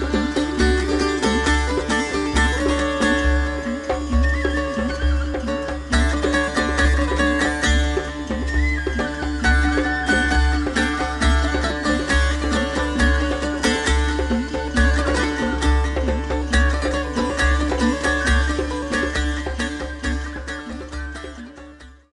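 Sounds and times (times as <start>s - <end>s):
dulcimer tune: 0.0s - 22.1s.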